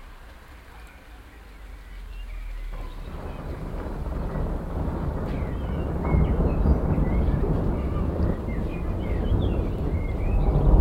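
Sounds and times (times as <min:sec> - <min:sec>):
thunder rumbling heard from a balcony: 0:02.4 - 0:10.8.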